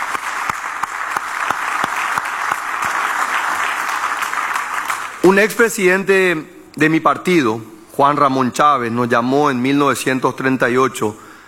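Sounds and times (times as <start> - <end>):
audience applause: 0.0 - 5.2
speech: 5.3 - 11.2.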